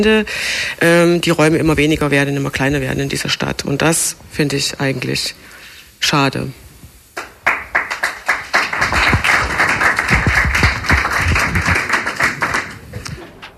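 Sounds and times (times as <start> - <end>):
speech: 0.0 - 6.6
audience applause: 7.2 - 13.2.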